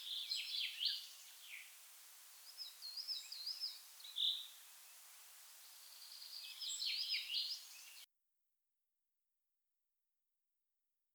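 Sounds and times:
common chaffinch song, Fringilla coelebs: 0.0 - 8.1.

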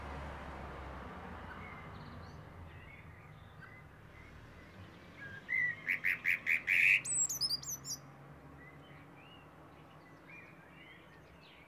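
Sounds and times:
common blackbird chinking calls: 5.6 - 8.0.

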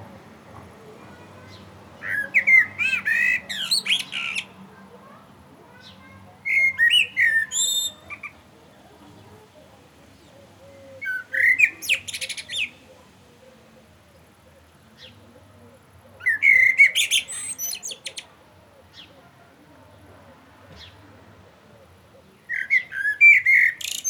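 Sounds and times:
Common blackbird song: 1.4 - 13.6, 14.2 - 19.3, 22.1 - 24.0.

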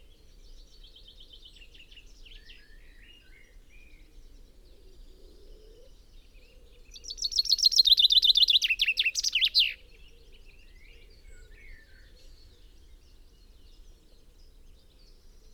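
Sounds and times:
common chaffinch (Fringilla coelebs) descending trilled song: 7.0 - 9.8.

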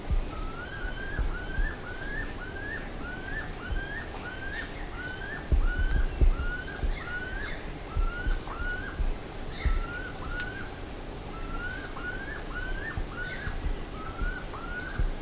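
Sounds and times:
birds slurred whistled calls: 0.2 - 10.7, 11.3 - 15.1
low thumps: 5.5 - 6.9.

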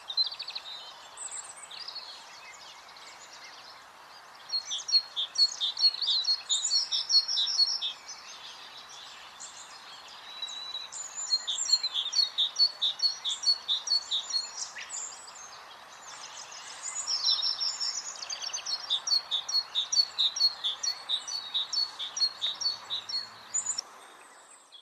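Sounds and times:
background hiss: 0.0 - 24.8
great tit calls: 4.5 - 24.8.

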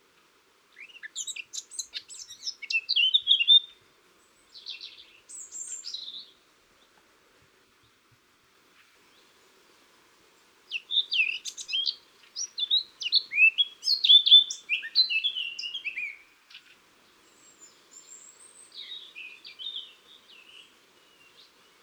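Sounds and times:
Eurasian blackcap warbling song: 0.8 - 3.7, 10.7 - 21.8.

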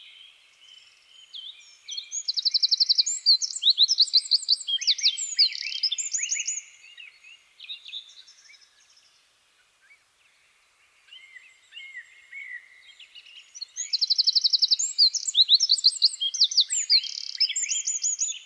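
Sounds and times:
Eurasian wren singing: 1.2 - 8.6, 13.1 - 18.4.

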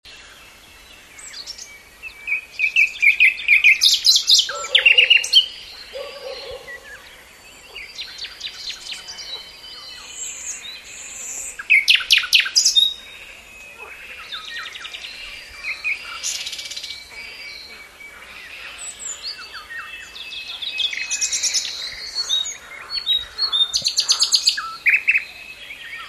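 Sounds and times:
common nightingale singing: 0.1 - 26.0.

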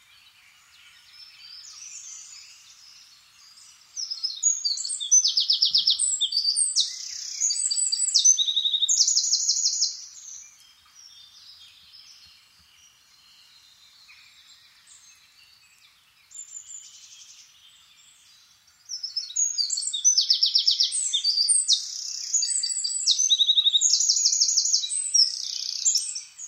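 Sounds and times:
Eurasian wren trilling song: 0.0 - 26.4.

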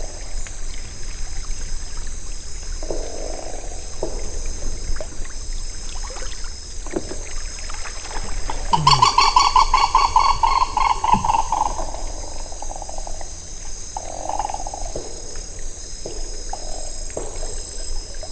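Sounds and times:
lower bird calls: 8.5 - 12.8
bird harsh clucks: 8.8 - 11.7.

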